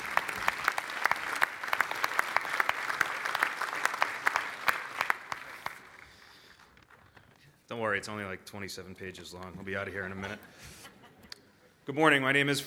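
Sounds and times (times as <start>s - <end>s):
audience applause at the 2022 St. Patrick's Day breakfast in Boston: 0.0s - 7.4s
speech: 7.9s - 10.9s, 11.9s - 12.6s.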